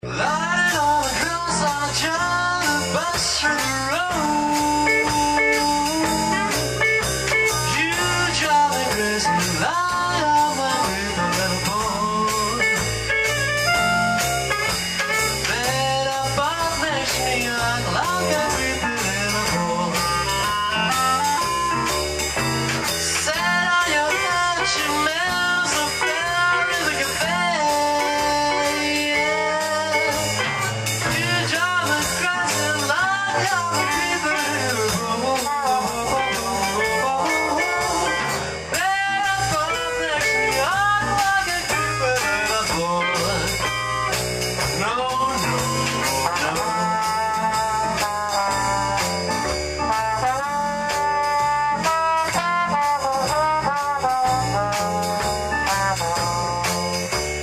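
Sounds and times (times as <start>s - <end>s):
blues music: 0.0s - 57.4s.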